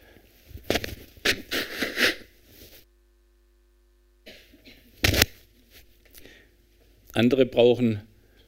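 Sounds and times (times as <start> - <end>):
nose blowing: 1.2 - 2.3
speech: 7.2 - 8.1.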